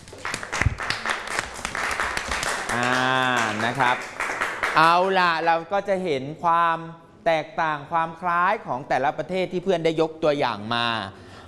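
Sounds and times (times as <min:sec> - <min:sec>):
classroom of students applauding: 0:00.0 - 0:05.4
speech: 0:02.7 - 0:04.1, 0:04.7 - 0:11.2.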